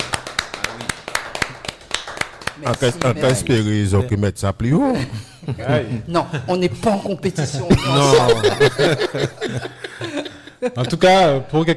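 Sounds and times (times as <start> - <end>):
scattered audience applause from a small group: 0.0 - 3.4
speech: 2.6 - 11.7
laughter: 7.4 - 11.2.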